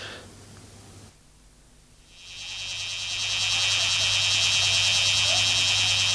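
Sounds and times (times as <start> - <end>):
bear cicada song buzzing drone: 2.0 - 6.1.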